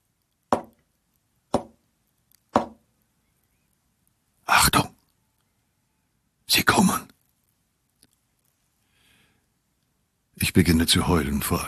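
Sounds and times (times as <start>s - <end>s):
soft knocking on a cell wall: 0.5s - 0.8s, 1.5s - 1.8s, 2.6s - 2.8s
speech: 10.4s - 11.6s.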